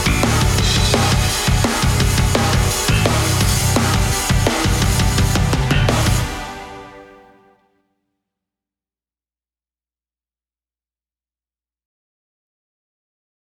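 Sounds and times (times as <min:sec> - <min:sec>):
karaoke singing: 0:00.0 - 0:07.1.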